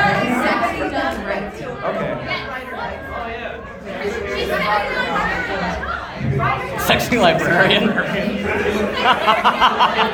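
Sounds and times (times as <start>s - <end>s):
crowd chatter: 0.0s - 10.1s
laughter: 3.9s - 10.1s
speech: 7.2s - 10.1s.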